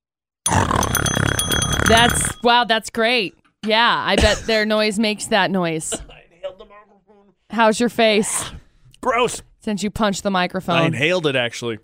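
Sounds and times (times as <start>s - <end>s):
voice imitating a kettlebell going through an industrial shredder: 0.5s - 2.4s
metallic ringing tones: 0.5s - 2.8s
speech: 1.9s - 6.2s, 7.6s - 11.8s.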